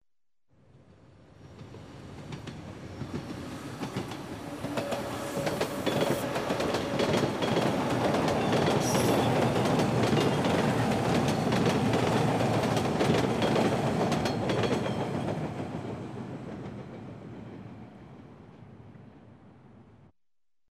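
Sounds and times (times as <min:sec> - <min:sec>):
metro train passing by: 0:00.9 - 0:19.7
metro train wheels clacking: 0:01.4 - 0:17.8.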